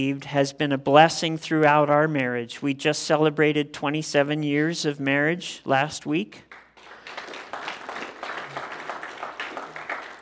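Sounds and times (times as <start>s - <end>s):
speech: 0.0s - 6.5s
audience applause: 6.5s - 10.2s.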